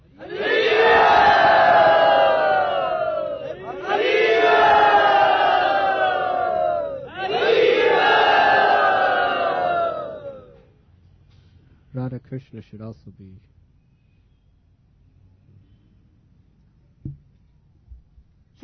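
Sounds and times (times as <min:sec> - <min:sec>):
crowd at a devotional gathering chanting in welcome: 0:00.1 - 0:10.6
speech: 0:12.3 - 0:13.6.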